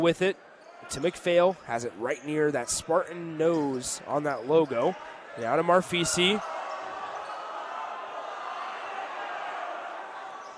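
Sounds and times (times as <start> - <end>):
speech: 0.0 - 6.6
high school basketball crowd roar: 5.0 - 10.5.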